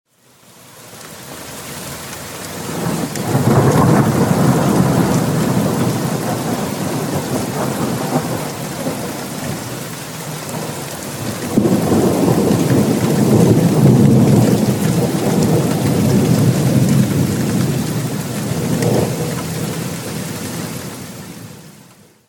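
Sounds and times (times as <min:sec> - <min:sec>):
great thunder with lightning: 0:02.7 - 0:09.6, 0:10.5 - 0:19.8.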